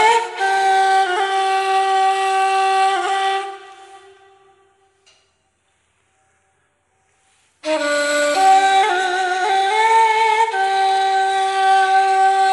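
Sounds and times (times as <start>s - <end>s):
ney flute solo: 0.0s - 4.8s, 7.6s - 12.5s.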